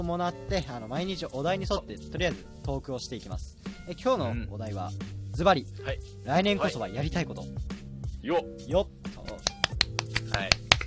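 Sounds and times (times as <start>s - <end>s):
speech: 0.0s - 9.0s, 10.4s - 10.6s
hands clapping: 9.2s - 10.8s.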